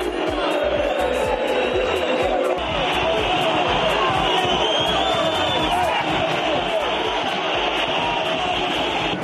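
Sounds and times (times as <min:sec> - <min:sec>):
rhythmic thumping: 0:00.0 - 0:09.2
stadium crowd chanting insults at a player: 0:00.0 - 0:09.2.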